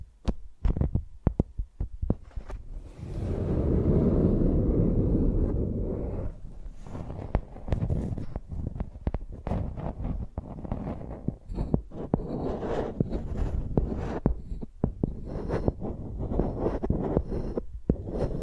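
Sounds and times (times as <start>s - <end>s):
microphone tapped like a pencil: 0.2s - 2.7s, 6.9s - 16.3s
long low rumbling microphone scrape: 2.0s - 18.4s.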